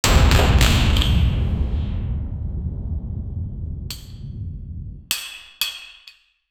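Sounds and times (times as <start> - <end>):
thunder-like echo in a castle: 0.0 - 5.2.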